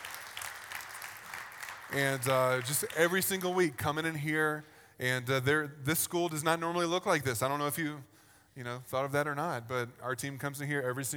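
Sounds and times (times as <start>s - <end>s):
audience applause: 0.0s - 3.2s
speech: 1.9s - 11.1s.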